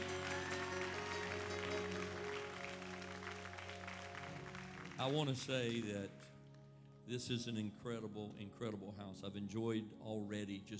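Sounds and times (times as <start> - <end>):
audience hand clapping applause: 0.0 - 6.6
low sustained musical drone: 0.0 - 9.1
speech: 5.0 - 6.3, 7.1 - 10.7.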